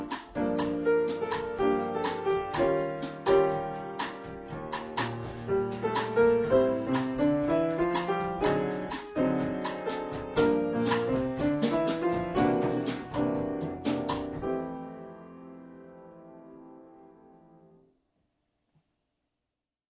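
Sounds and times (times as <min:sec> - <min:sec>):
drums: 0:00.0 - 0:14.8
piano: 0:00.0 - 0:18.0.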